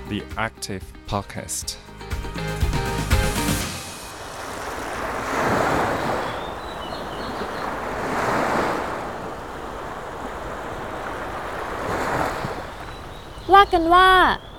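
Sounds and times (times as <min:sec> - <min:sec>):
speech: 0:00.4 - 0:02.6, 0:13.6 - 0:14.5
sea waves breaking on a beach: 0:03.6 - 0:14.5.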